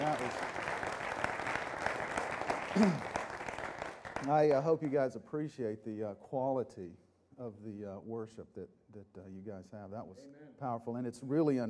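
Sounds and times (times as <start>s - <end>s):
audience clapping for worship group: 0.0s - 5.0s
speech: 2.8s - 3.1s, 4.2s - 11.6s.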